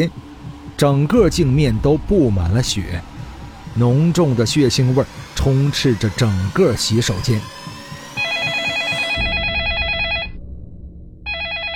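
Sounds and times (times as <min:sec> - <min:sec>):
speech: 0:00.0 - 0:00.2, 0:00.8 - 0:03.1, 0:03.8 - 0:07.6
telephone ringing: 0:08.2 - 0:10.4, 0:11.3 - 0:11.7.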